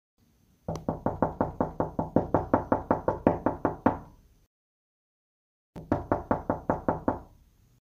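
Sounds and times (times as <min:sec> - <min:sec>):
knocking on a door: 0:00.7 - 0:04.1, 0:05.8 - 0:07.3.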